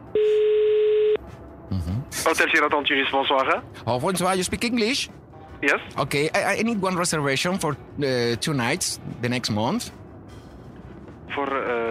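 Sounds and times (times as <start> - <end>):
telephone line tone while a call is being dialed: 0.1 - 1.2
speech: 1.7 - 10.0, 11.4 - 11.8.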